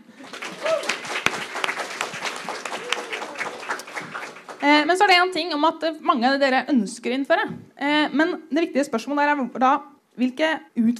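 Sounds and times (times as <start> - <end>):
small round of applause: 0.0 - 5.0
speech: 4.9 - 10.9.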